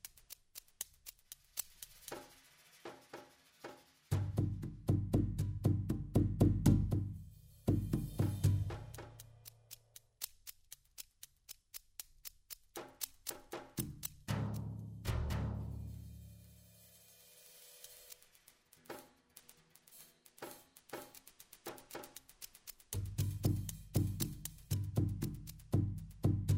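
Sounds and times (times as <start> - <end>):
desert film score music: 4.1 - 10.4, 12.5 - 16.4, 20.6 - 26.5.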